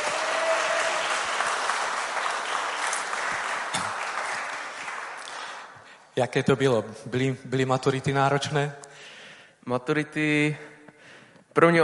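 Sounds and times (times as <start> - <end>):
audience applause welcoming a graduate: 0.0 - 5.8
speech: 6.2 - 8.9, 9.6 - 10.7, 11.6 - 11.8.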